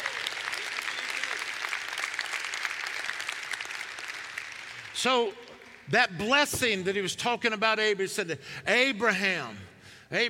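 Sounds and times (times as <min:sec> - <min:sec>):
people cheering: 0:00.0 - 0:05.4
crowd clapping: 0:00.0 - 0:05.9
speech: 0:05.0 - 0:10.2.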